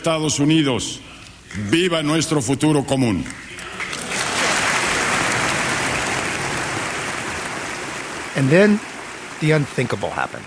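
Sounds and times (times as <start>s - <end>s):
speech: 0.0s - 3.5s, 8.4s - 10.4s
thunderous applause from a large crowd in Congress: 4.0s - 10.4s.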